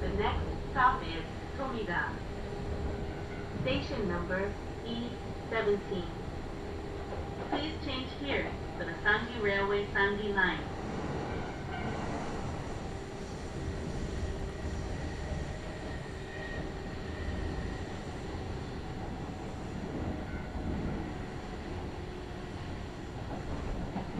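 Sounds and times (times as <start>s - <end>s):
voice: 0.0s - 2.2s, 3.6s - 6.2s, 7.5s - 10.7s
Kintetsu Nagoya Line local train humming and rumbling: 0.0s - 24.1s.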